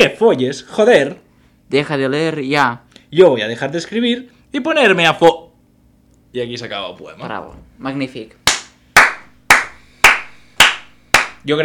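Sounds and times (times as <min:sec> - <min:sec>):
speech: 0:00.0 - 0:05.5, 0:06.3 - 0:08.4, 0:11.4 - 0:11.6
hand claps after a poem reading: 0:08.4 - 0:11.5.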